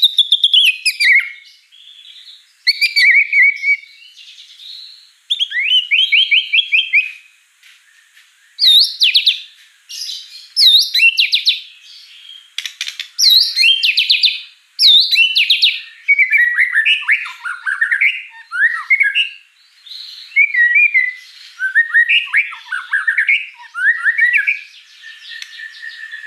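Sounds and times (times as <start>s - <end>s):
White-rumped shama singing: 0.0s - 26.2s.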